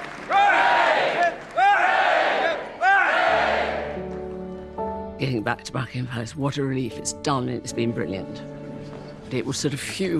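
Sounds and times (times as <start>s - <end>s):
crowd giving three cheers: 0.0s - 4.0s
speech: 5.4s - 8.6s, 9.3s - 10.1s.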